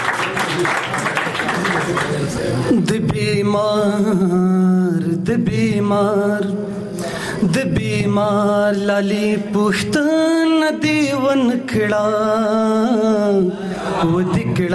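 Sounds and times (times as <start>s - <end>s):
applause for a poet at a Pashto poetry gathering: 0.0s - 2.6s
speech: 0.6s - 0.8s, 2.5s - 6.8s, 7.4s - 14.7s.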